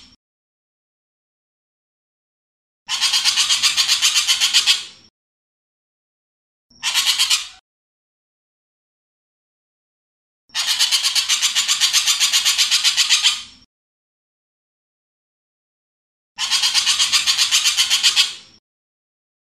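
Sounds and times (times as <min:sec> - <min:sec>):
ekek geling bird call variations: 0:02.9 - 0:05.0, 0:06.8 - 0:07.6, 0:10.5 - 0:13.5, 0:16.4 - 0:18.5.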